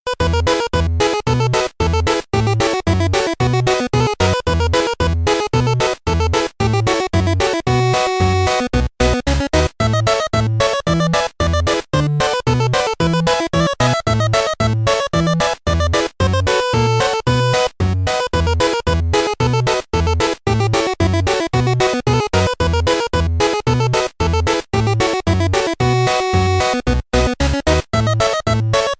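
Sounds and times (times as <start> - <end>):
8-bit music: 0.1 - 28.9.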